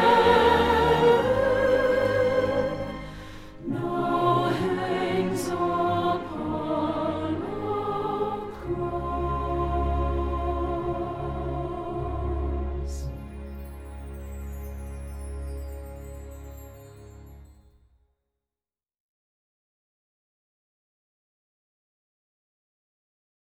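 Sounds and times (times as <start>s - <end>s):
soprano singing: 0.0s - 17.5s.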